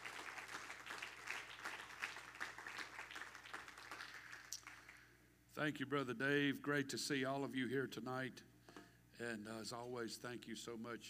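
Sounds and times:
audience clapping hands: 0:00.0 - 0:05.1
speech: 0:05.6 - 0:08.5, 0:09.2 - 0:11.0.

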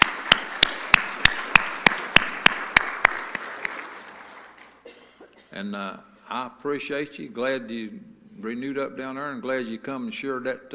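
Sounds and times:
audience applauding: 0:00.0 - 0:04.8
speech: 0:05.6 - 0:10.7.

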